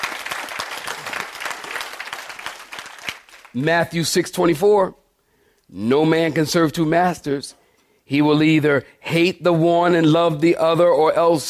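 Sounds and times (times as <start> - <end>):
crowd clapping: 0.0 - 3.7
speech: 3.6 - 5.0, 5.7 - 11.4.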